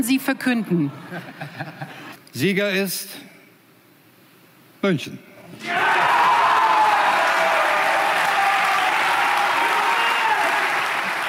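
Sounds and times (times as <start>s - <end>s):
speech: 0.0s - 3.3s, 4.8s - 6.0s
large crowd cheering and applauding: 5.6s - 11.2s.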